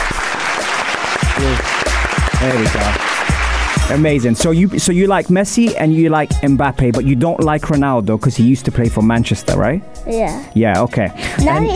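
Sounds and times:
audience applause: 0.0s - 4.2s
speech: 2.4s - 3.3s, 3.9s - 11.7s.

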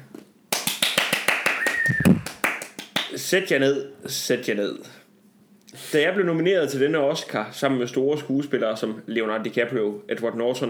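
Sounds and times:
hand clapping: 0.5s - 3.2s
whistle-like tone: 1.6s - 2.3s
speech: 3.3s - 5.0s, 5.7s - 10.6s.

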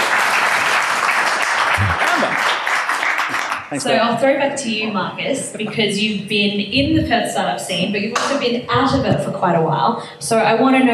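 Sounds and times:
audience applause: 0.0s - 3.8s
speech: 3.7s - 10.9s.

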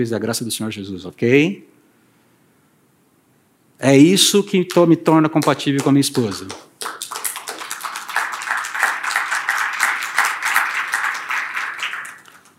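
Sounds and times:
speech: 0.0s - 1.8s, 3.8s - 7.0s
crowd applause: 6.2s - 12.5s.

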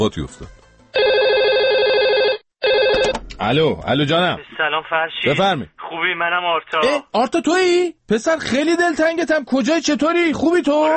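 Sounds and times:
speech: 0.0s - 0.6s, 3.4s - 10.9s
telephone ringing with warbling electronic tone: 1.0s - 3.2s.

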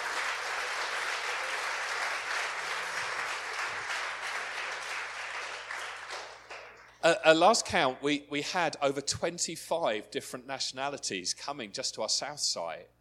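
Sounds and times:
applause: 0.0s - 7.0s
speech: 7.0s - 12.9s.

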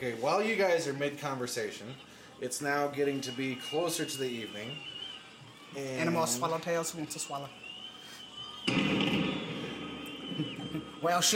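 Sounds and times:
speech: 0.0s - 5.0s, 5.7s - 7.6s, 10.7s - 11.3s
loud crack with long rumbling decay: 8.7s - 10.7s.

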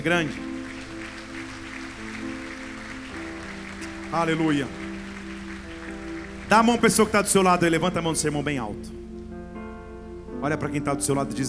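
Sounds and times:
speech: 0.0s - 0.5s, 4.1s - 4.8s, 6.5s - 9.0s, 10.4s - 11.4s
audience applause: 0.0s - 8.2s.

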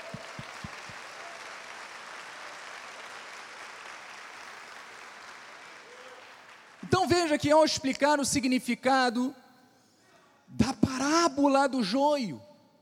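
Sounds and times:
audience applauding: 0.0s - 6.9s
speech: 7.0s - 9.4s, 11.1s - 12.5s.

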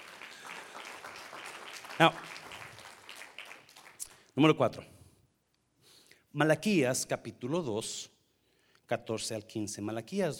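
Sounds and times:
audience applause: 0.0s - 4.2s
speech: 2.0s - 2.3s, 4.4s - 5.0s, 6.4s - 8.2s, 8.9s - 10.3s.

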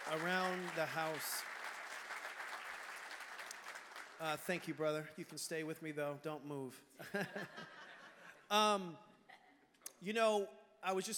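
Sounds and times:
crowd clapping: 0.0s - 5.1s
speech: 0.1s - 1.6s, 4.2s - 7.8s, 8.5s - 9.1s, 10.0s - 11.1s
laughter: 7.0s - 8.5s.

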